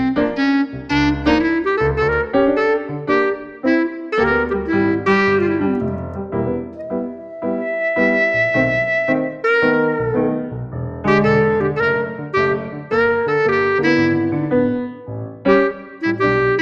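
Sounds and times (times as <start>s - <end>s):
blues music: 0.0s - 16.6s.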